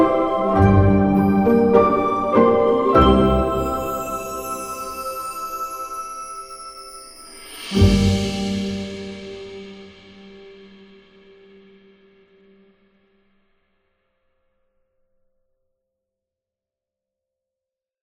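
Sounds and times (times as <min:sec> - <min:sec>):
magical medieval fantasy atmospheric background music: 0:00.0 - 0:10.7.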